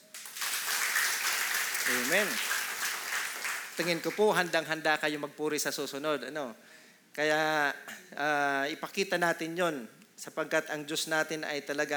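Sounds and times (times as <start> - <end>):
crowd applause: 0.1 - 4.4
speech: 1.9 - 2.5, 3.8 - 11.9.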